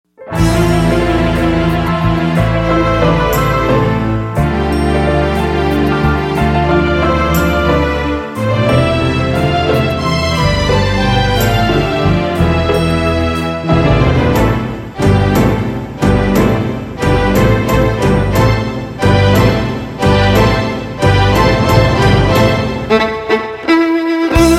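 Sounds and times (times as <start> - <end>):
violin: 0.3 - 24.5.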